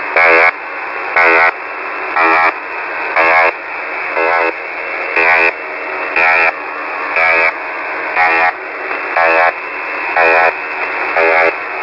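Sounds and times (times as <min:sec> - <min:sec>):
channel marker signal from an unidentified station: 0:00.1 - 0:00.5, 0:01.2 - 0:01.6, 0:02.2 - 0:02.6, 0:03.2 - 0:03.6, 0:04.2 - 0:06.6, 0:07.2 - 0:07.6, 0:08.2 - 0:08.6, 0:09.2 - 0:09.6, 0:10.2 - 0:11.6.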